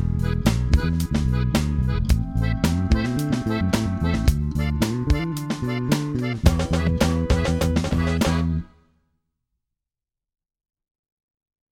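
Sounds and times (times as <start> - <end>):
instrumental music without vocals: 0.0 - 9.0.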